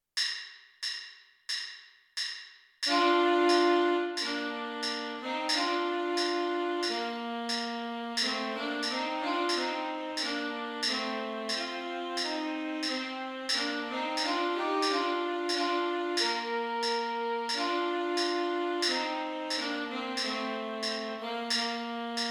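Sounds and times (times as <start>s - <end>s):
tenor saxophone: 2.9s - 22.2s.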